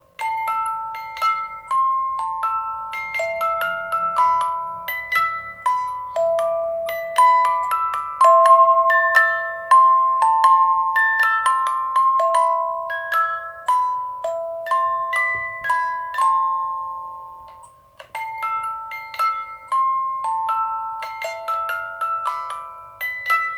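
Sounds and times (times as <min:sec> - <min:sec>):
music box: 0:00.0 - 0:23.5.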